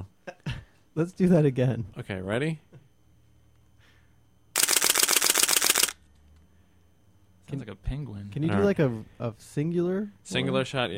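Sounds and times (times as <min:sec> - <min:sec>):
speech: 0:01.0 - 0:02.7, 0:07.5 - 0:10.9
camera shutter firing in burst mode: 0:04.6 - 0:06.0.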